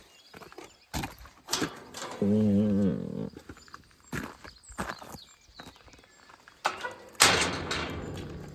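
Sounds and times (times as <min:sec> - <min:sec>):
cemetery entrance gate: 0:01.5 - 0:02.8, 0:06.6 - 0:08.5.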